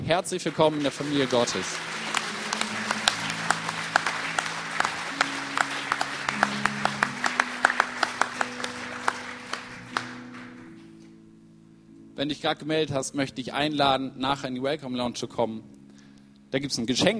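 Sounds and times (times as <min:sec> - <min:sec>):
audience applause at a church service: 0:00.0 - 0:10.7
sustained keyboard chords: 0:00.0 - 0:17.1
speech: 0:00.1 - 0:02.0, 0:12.2 - 0:15.8, 0:16.5 - 0:17.1.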